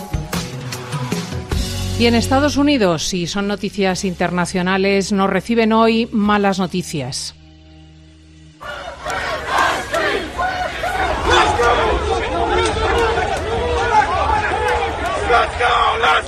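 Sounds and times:
speech: 2.0s - 7.4s
night-time crowd of Donald Trump supporters and opponents yelling in Washington: 8.6s - 16.2s.

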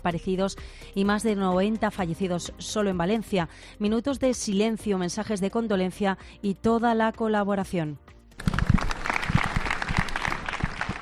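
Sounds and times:
speech: 0.0s - 8.5s
crowd applauding in front of Valladolid City Hall: 8.4s - 11.0s.

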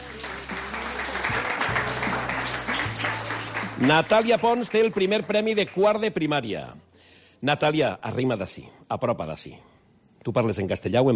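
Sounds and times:
audience applause: 0.0s - 6.0s
speech: 3.8s - 6.8s, 7.4s - 11.1s.

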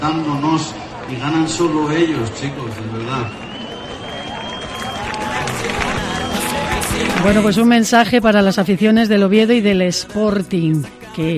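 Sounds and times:
speech: 0.0s - 3.6s, 7.0s - 11.3s
crowd murmur: 0.0s - 7.7s
audience applause: 0.6s - 7.7s.

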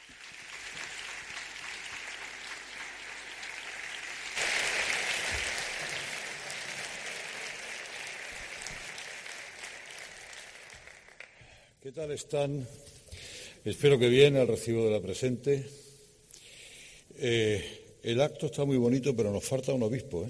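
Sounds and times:
audience applause welcoming a speaker: 0.0s - 11.4s
speech: 11.9s - 12.9s, 13.6s - 15.8s, 17.2s - 20.2s.

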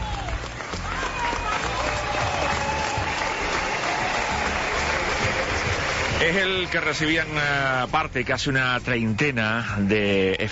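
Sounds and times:
ovation applause: 0.0s - 7.7s
speech: 6.2s - 10.4s.

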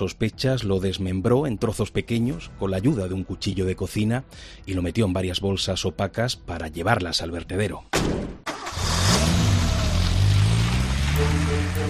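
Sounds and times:
speech: 0.0s - 8.4s
car engine starting, revving and driving: 8.5s - 11.8s.

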